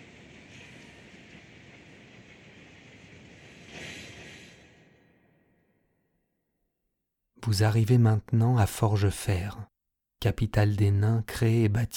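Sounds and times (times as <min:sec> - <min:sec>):
World of Warcraft Classic tram running on rails toward Ironforge: 0:00.0 - 0:04.8
speech: 0:07.4 - 0:11.9.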